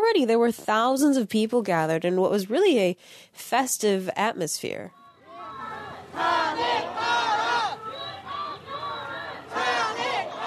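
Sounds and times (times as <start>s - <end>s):
speech: 0.1s - 5.0s
protesters chanting for President Yoon's impeachment at the National Assembly in Seoul: 5.0s - 10.4s.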